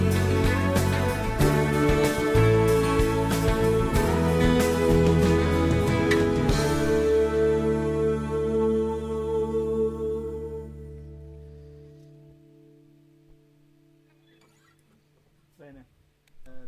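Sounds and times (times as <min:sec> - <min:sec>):
keyboards playing: 0:00.0 - 0:09.6.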